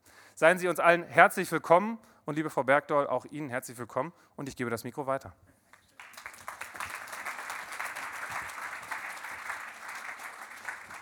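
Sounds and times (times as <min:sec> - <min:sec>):
speech: 0:00.4 - 0:05.6
audience applause welcoming a moderator on stage: 0:06.0 - 0:11.0.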